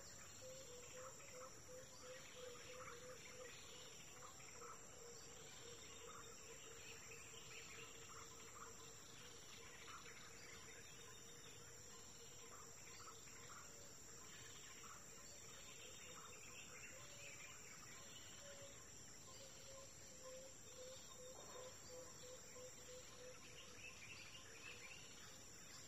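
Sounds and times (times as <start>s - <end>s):
forest ambience at dawn in Kuma Apoti Togo: 0.0s - 25.8s.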